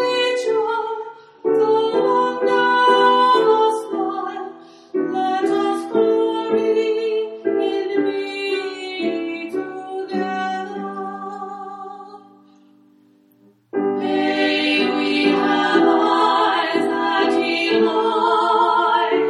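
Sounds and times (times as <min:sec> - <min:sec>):
piano: 0:00.0 - 0:19.2
soprano alto and tenor choir singing: 0:13.9 - 0:19.2.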